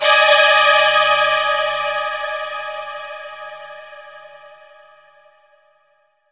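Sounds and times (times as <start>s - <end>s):
dissonant strings: 0.0s - 3.4s.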